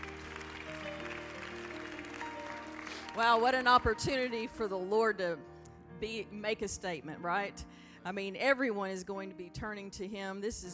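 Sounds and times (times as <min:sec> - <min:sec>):
audience clapping in praise: 0:00.0 - 0:04.0
speech: 0:03.2 - 0:10.7.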